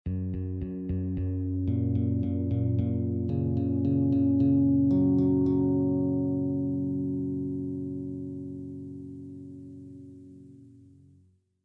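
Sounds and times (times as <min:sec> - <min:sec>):
guitar with delay effect in F: 0:00.1 - 0:11.2.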